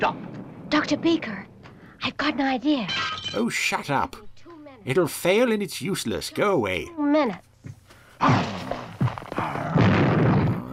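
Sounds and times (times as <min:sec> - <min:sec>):
speech: 0:00.0 - 0:04.2, 0:04.8 - 0:08.6
Beaker's lab being smashed up: 0:08.3 - 0:10.7.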